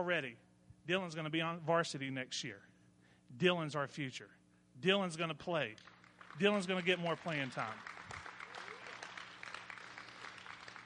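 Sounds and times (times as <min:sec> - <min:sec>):
speech: 0:00.0 - 0:02.7, 0:03.3 - 0:08.0
audience clapping: 0:05.7 - 0:10.8.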